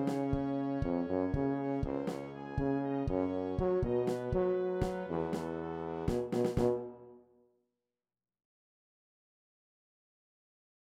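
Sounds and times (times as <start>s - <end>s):
tuba: 0.0s - 7.3s.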